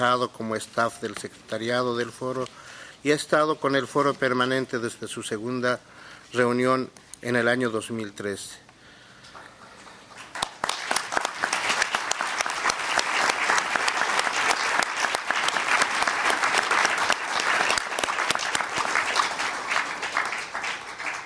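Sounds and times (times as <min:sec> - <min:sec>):
speech: 0:00.0 - 0:08.6
audience applause: 0:10.1 - 0:21.2.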